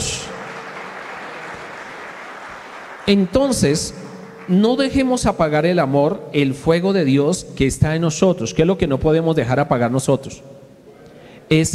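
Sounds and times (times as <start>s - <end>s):
audience applauding: 0.0s - 5.2s
speech: 3.1s - 10.6s, 11.5s - 11.7s.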